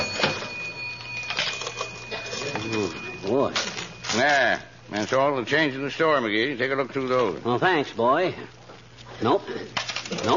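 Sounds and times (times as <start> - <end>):
cash register being opened: 0.0 - 4.5
speech: 3.2 - 8.6, 9.2 - 10.3.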